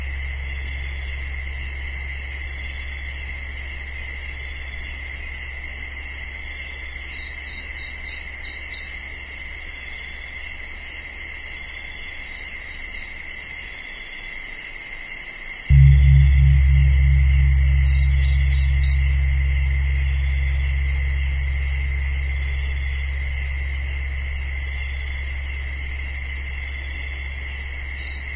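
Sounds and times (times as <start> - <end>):
gongs ringing: 15.7 - 24.6.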